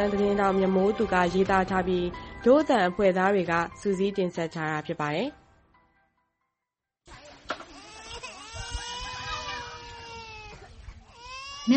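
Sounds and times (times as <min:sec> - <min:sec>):
speech: 0:00.0 - 0:05.4
two-year-old child crying in a tent camp: 0:07.8 - 0:11.7.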